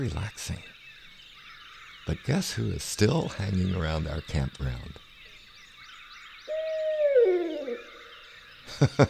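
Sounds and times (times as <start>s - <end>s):
speech: 0.0s - 0.7s, 2.1s - 5.1s, 8.7s - 9.0s
songbirds chirping: 0.0s - 9.0s
barred owl hooting: 6.5s - 8.3s.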